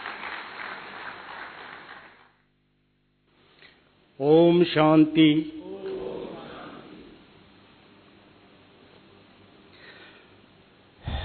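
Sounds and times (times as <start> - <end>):
audience applause: 0.0 - 2.3
speech: 4.2 - 5.6.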